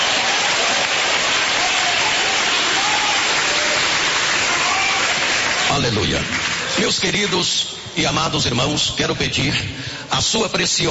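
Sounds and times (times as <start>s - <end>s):
audience clapping hands: 0.0s - 7.6s
speech: 5.8s - 10.9s.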